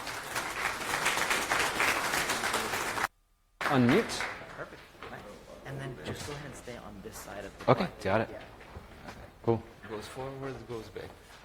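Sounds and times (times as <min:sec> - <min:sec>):
audience applause: 0:00.0 - 0:04.8
speech: 0:03.7 - 0:04.3, 0:05.8 - 0:11.3.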